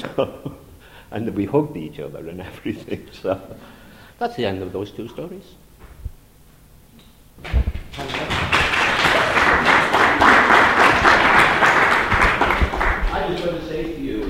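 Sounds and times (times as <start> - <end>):
speech: 0.0 - 5.6
audience clapping: 7.8 - 14.2.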